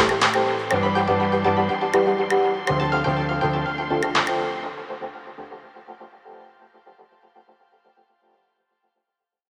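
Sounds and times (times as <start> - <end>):
energetic upbeat background music: 0.0 - 7.0.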